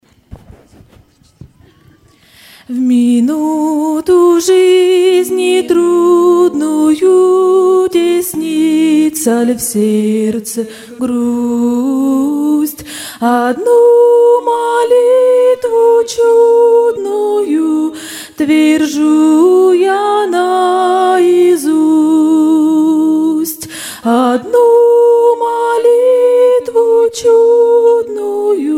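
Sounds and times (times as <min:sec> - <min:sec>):
person singing: 0:01.6 - 0:28.7.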